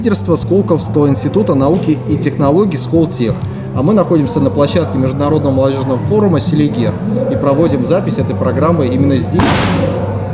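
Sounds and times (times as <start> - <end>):
speech: 0.0 - 10.0
ball flying in and thudding: 9.4 - 10.2.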